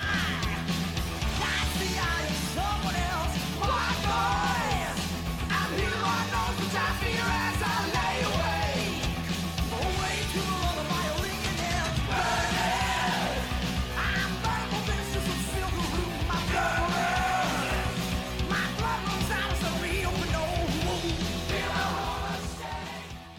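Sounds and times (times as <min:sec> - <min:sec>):
1980s heavy metal song: 0:00.0 - 0:23.3
distorted guitars: 0:00.0 - 0:23.3
pounding drums: 0:00.0 - 0:23.3.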